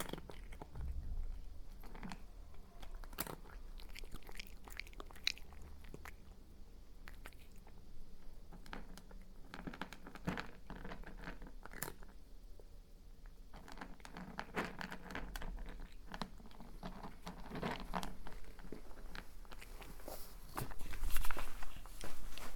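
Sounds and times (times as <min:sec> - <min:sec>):
cat crunching dry kibble: 0:00.0 - 0:22.0
soft rustles and bumps: 0:14.2 - 0:22.5.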